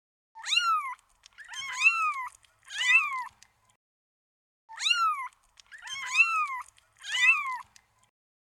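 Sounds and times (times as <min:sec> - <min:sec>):
cat meowing: 0:00.4 - 0:03.4, 0:04.7 - 0:07.8.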